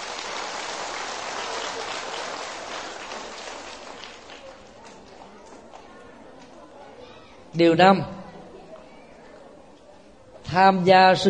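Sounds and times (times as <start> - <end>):
big round of applause: 0.0 - 5.8
speech: 7.6 - 8.2, 10.6 - 11.2.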